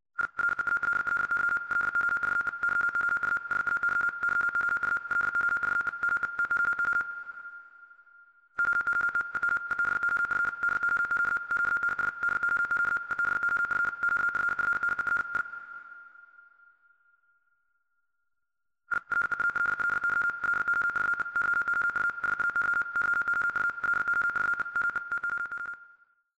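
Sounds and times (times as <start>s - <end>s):
morse code beeps: 0.4s - 7.1s, 8.6s - 15.4s, 18.9s - 25.7s.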